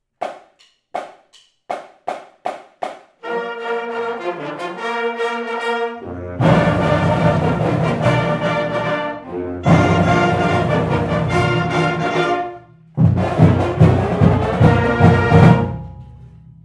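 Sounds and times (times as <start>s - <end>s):
fanfare: 3.2s - 16.0s.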